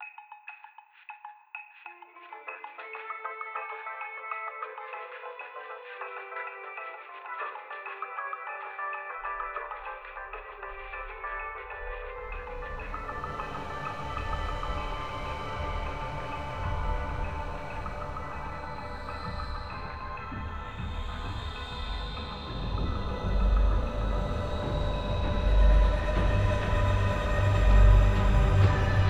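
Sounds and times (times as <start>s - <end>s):
elevator music: 9.6s - 29.0s.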